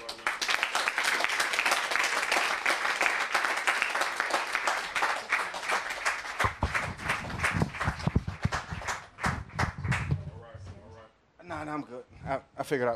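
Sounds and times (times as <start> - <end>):
audience clapping: 0.0 - 10.3
speech: 11.8 - 12.9.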